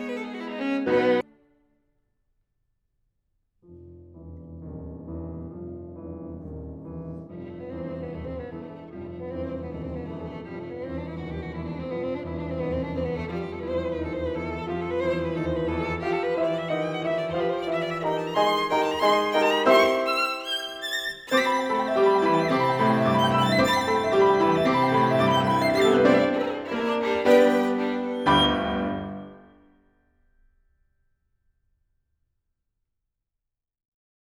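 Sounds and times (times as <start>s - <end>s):
violin sonata finale: 0.0s - 1.6s, 5.9s - 29.4s.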